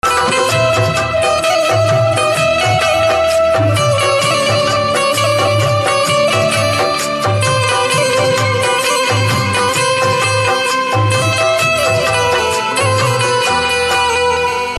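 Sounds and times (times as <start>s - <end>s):
banjo instrumental ringtone: 0.0s - 14.7s.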